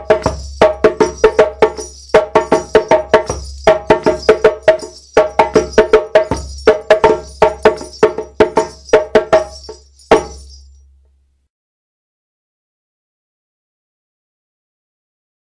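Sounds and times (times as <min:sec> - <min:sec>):
djembe drumming: 0:00.0 - 0:10.6.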